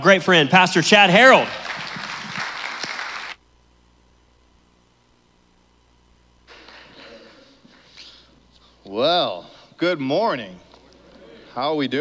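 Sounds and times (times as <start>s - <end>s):
speech: 0.0s - 1.9s, 9.0s - 10.6s, 11.6s - 11.9s
low quiet hum: 0.0s - 11.9s
church congregation clapping to welcome a guest pastor: 1.0s - 3.4s.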